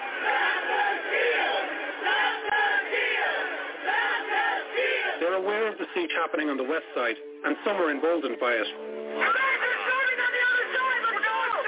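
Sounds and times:
rioting crowd shouting: 0.0s - 5.5s, 9.2s - 11.6s
speech: 5.7s - 9.4s.

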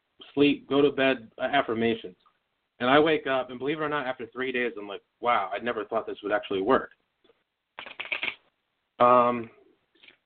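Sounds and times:
speech: 0.4s - 2.2s, 2.8s - 7.0s, 9.0s - 9.6s
playing cards shuffled in riffling bursts: 7.8s - 8.4s.

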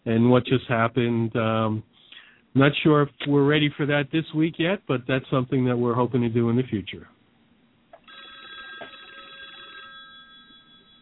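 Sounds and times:
speech: 0.1s - 7.1s
cheesy telephone ringing: 8.0s - 11.0s.

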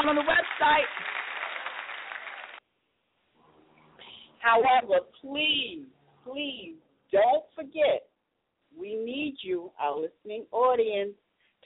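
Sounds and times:
speech: 0.0s - 1.2s, 4.4s - 8.1s, 8.7s - 11.2s
hosts clapping their hands: 0.0s - 2.6s.

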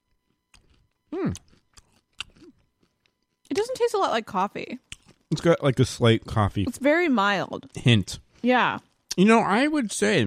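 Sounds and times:
crunchy chewing of coffee-flavoured peanut M&M candies: 0.2s - 3.4s
speech: 1.1s - 1.5s, 3.8s - 10.2s
person humming: 1.2s - 1.4s.

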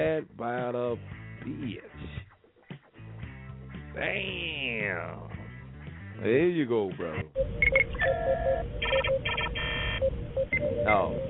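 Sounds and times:
speech: 0.2s - 2.3s, 4.0s - 5.4s, 6.2s - 11.2s
steady low hum: 7.4s - 11.2s
telephone keypad dialing tones: 7.4s - 11.2s.

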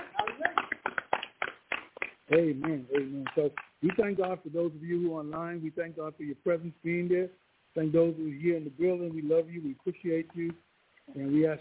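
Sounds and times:
hand clapping: 0.0s - 4.5s
speech: 2.3s - 11.5s.

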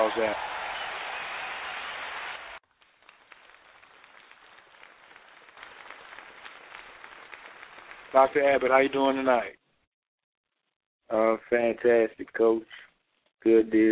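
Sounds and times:
audience applause welcoming a speaker at a talk on natural medicine and grief: 0.0s - 9.4s
speech: 0.1s - 0.6s, 8.1s - 9.6s, 11.1s - 13.9s.

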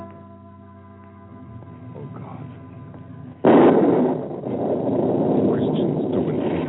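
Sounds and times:
thunder: 3.4s - 6.6s.

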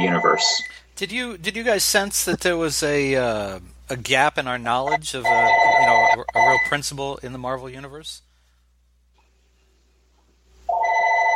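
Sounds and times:
telephone ringing: 0.0s - 0.8s, 4.9s - 6.8s, 10.7s - 11.3s
speech: 0.0s - 8.3s.

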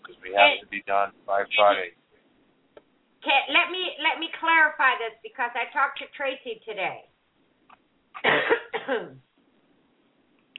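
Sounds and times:
speech: 0.4s - 2.0s, 3.2s - 7.1s, 8.2s - 9.3s
woman clearing her throat: 8.2s - 9.3s.

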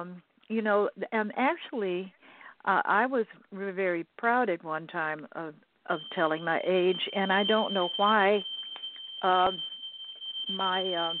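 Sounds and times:
speech: 0.0s - 8.5s, 9.2s - 9.7s, 10.5s - 11.1s
smoke detector alarm going off: 5.9s - 11.1s.

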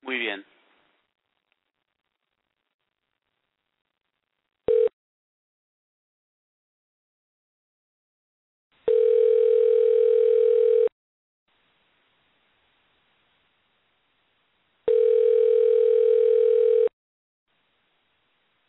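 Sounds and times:
telephone call ringing unanswered: 4.7s - 4.9s, 8.9s - 10.9s, 14.9s - 16.9s.

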